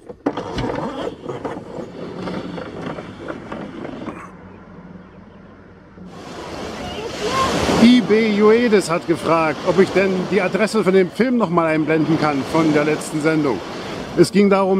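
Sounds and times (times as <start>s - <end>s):
rustling and clicking as vehicle air conditioning is switched on: 0.0s - 4.4s
speech: 8.1s - 14.7s.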